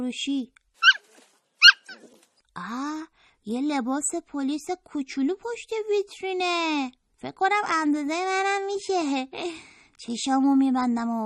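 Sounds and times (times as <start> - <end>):
speech: 0.0 - 0.6, 2.6 - 11.2
small dog yipping in front of a clothing shop window: 0.8 - 2.2.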